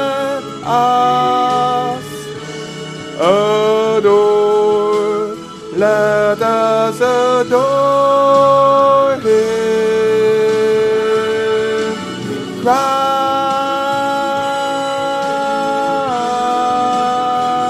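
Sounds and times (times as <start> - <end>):
soprano voice singing: 0.0 - 17.6.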